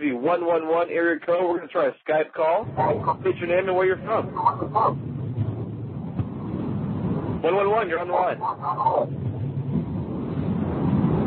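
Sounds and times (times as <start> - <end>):
speech: 0.2 - 5.1, 7.4 - 9.2
wind noise on call: 2.6 - 11.2.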